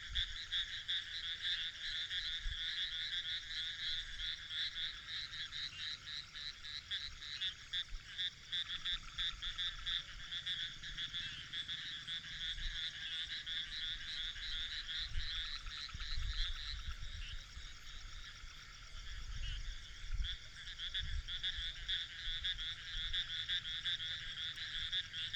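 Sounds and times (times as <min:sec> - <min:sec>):
frogs calling in chorus: 0:00.0 - 0:25.3.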